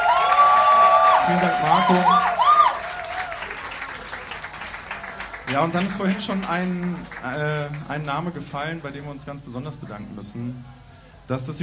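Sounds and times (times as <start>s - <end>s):
audience applause: 0.0s - 8.8s
speech: 1.3s - 2.4s, 5.5s - 11.6s.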